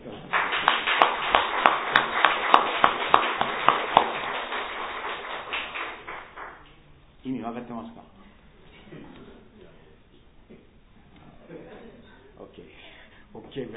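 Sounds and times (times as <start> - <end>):
applause: 0.0 - 6.7
speech: 7.7 - 8.1.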